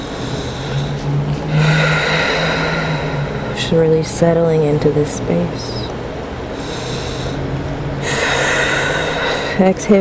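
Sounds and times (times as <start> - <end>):
deep breathing during a guided yoga breathing exercise: 0.0 - 4.2, 6.4 - 9.9
steady sustained tone: 0.0 - 9.9
speech: 3.7 - 5.9, 9.6 - 9.9.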